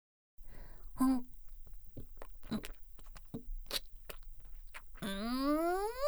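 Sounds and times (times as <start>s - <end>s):
crunchy chewing and biting on chiizu tara cheese-and-cod snack: 0.4s - 6.0s
voice: 5.0s - 6.0s.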